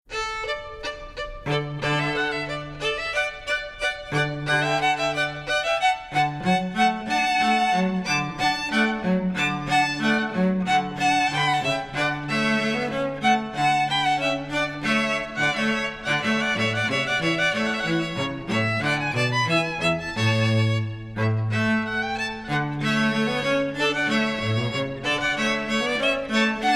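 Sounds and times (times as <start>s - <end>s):
musical trio: 0.2s - 26.7s.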